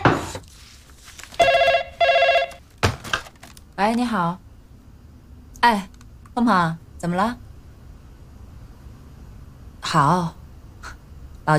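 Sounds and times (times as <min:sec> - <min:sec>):
telephone ringing: 0:01.4 - 0:02.6
speech: 0:03.8 - 0:04.4, 0:05.6 - 0:07.4, 0:09.9 - 0:10.4.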